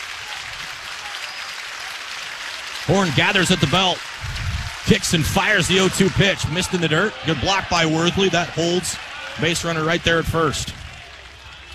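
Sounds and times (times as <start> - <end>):
stadium crowd cheering: 0.0 - 11.7
speech: 2.9 - 4.1, 4.9 - 10.8.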